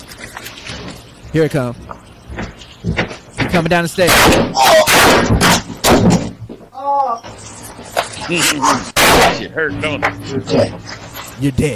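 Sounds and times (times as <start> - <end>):
speech: 1.3 - 2.0, 2.8 - 5.7, 8.3 - 11.7
gunshots in recorded audio of a shooting: 4.0 - 6.3, 8.9 - 9.5
person moaning: 6.7 - 7.3.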